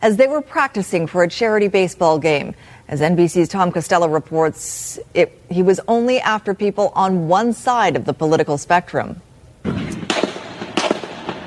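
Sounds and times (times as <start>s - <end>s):
speech: 0.0s - 9.8s
gunfire in a police gun battle with a lone gunman: 9.7s - 11.4s.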